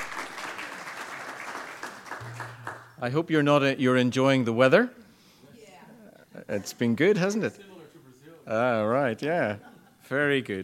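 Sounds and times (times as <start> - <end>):
audience applause: 0.0 - 3.0
speech: 3.0 - 5.0, 6.5 - 7.7, 8.5 - 10.6.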